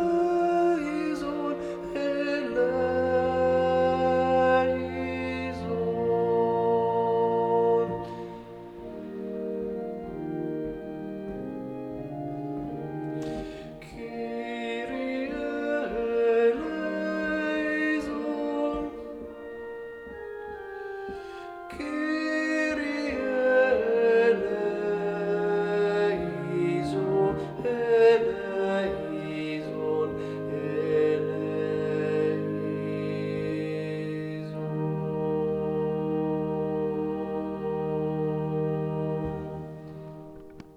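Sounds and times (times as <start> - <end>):
sopranos and tenors singing: 0.0 - 40.7.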